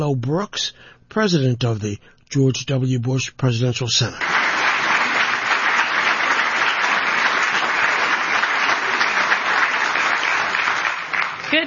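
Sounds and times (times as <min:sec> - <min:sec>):
speech: 0:00.0 - 0:04.4
sustained applause from a large audience: 0:04.2 - 0:11.6.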